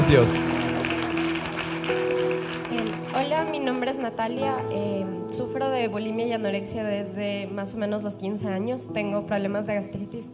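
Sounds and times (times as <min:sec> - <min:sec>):
audience applauding: 0:00.0 - 0:04.1
speech: 0:00.1 - 0:00.7, 0:03.8 - 0:10.3.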